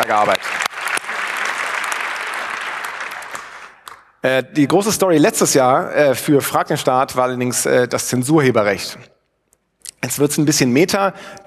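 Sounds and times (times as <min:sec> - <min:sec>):
applause: 0:00.0 - 0:04.2
speech: 0:00.1 - 0:00.6, 0:04.2 - 0:09.2, 0:10.0 - 0:11.4.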